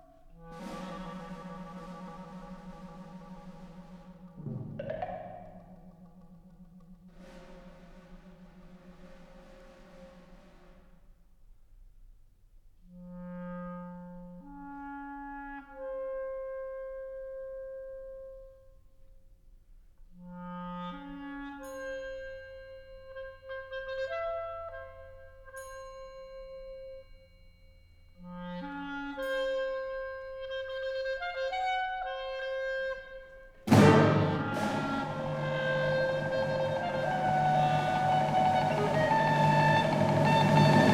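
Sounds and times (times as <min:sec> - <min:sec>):
clarinet concerto with orchestra: 0:00.4 - 0:04.6, 0:13.0 - 0:18.2, 0:20.3 - 0:25.5, 0:28.2 - 0:40.9.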